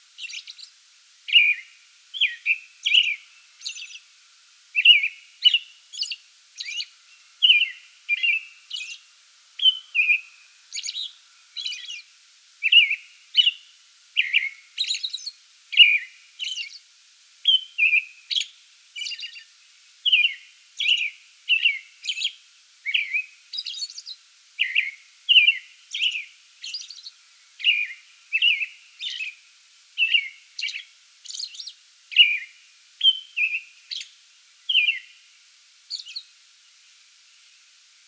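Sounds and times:
American robin singing whistled phrases: 0.2 - 0.7, 1.3 - 4.0, 4.8 - 9.0, 9.6 - 12.0, 12.6 - 13.6, 14.2 - 16.8, 17.5 - 19.5, 20.1 - 29.4, 30.0 - 34.1, 34.7 - 35.1.

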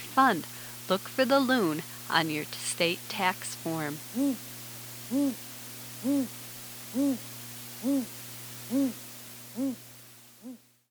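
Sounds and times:
speech: 0.2 - 4.5, 5.1 - 5.4, 6.0 - 9.0, 9.6 - 9.8
Great Gray Owl hooting: 4.1 - 10.7.

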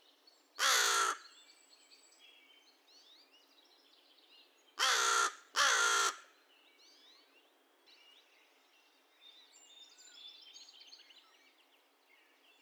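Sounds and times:
American crow uttering raspy caws: 0.6 - 1.2, 4.8 - 6.3.

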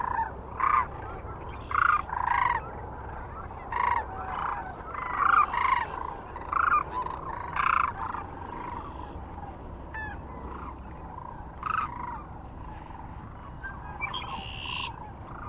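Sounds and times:
flock of Sandhill Cranes giving rolling rattling bugles: 0.0 - 15.4.

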